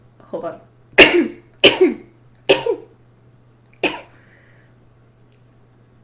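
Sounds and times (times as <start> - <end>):
sneeze: 1.0 - 2.9, 3.8 - 4.1.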